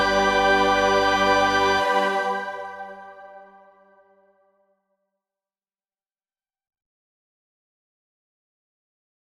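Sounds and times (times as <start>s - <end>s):
lyrical chanson: 0.0s - 4.2s.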